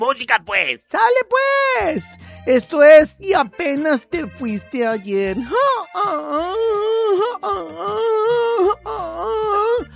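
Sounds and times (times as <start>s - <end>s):
speech: 0.0s - 9.9s
person wailing in pain: 5.3s - 9.9s.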